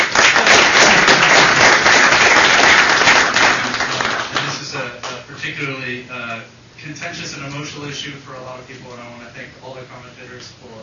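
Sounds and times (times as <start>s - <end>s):
applause: 0.0s - 5.2s
speech: 7.9s - 10.8s.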